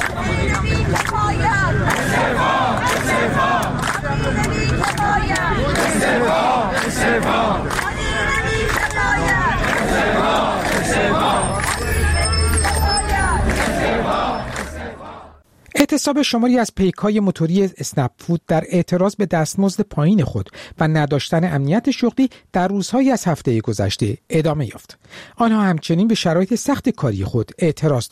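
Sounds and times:
protest crowd chanting slogans: 0:00.0 - 0:15.4
speech: 0:16.1 - 0:28.1.

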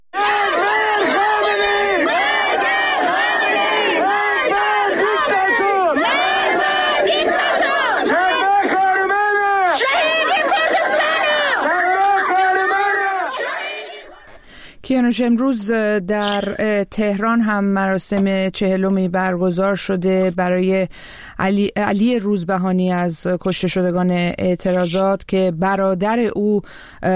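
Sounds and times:
protesters and mourners chanting slogans at a grave: 0:00.1 - 0:14.4
speech: 0:15.1 - 0:27.1.

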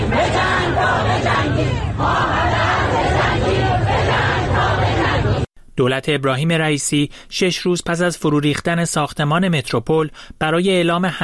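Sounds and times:
large street protest crowd chanting and shouting in unison: 0:00.0 - 0:05.5
speech: 0:05.8 - 0:11.2.

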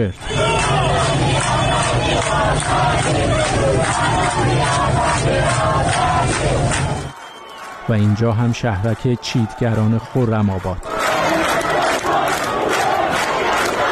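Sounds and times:
speech: 0:00.0 - 0:07.2, 0:07.9 - 0:11.0
people shouting: 0:00.2 - 0:07.1, 0:10.8 - 0:13.9
protesters chanting in the street: 0:00.2 - 0:07.2, 0:10.8 - 0:13.9.

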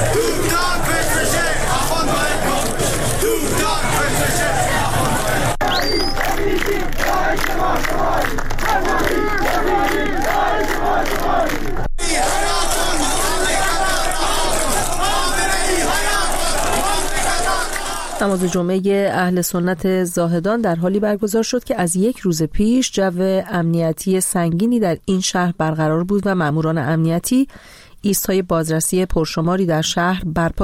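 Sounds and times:
roar of many voices: 0:00.0 - 0:18.5
protest crowd chanting anti-government slogans: 0:00.0 - 0:18.6
speech: 0:18.3 - 0:30.6.

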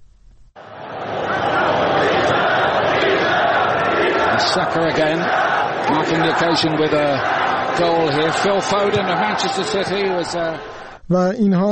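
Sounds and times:
football crowd chanting in unison at a match: 0:00.6 - 0:11.0
speech: 0:04.5 - 0:11.6.

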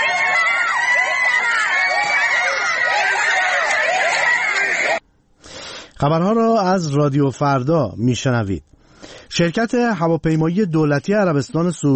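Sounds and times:
protesters chanting during tear gas attack: 0:00.0 - 0:05.0
speech: 0:06.0 - 0:08.8, 0:09.4 - 0:11.9.

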